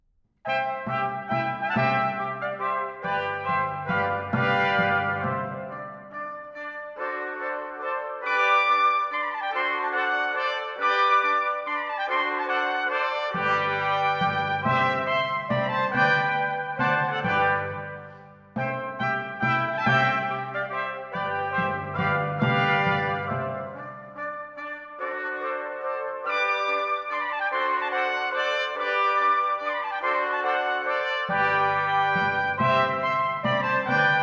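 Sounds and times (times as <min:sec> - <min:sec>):
four timpani: 0:00.4 - 0:34.2
five trumpets: 0:00.5 - 0:34.2.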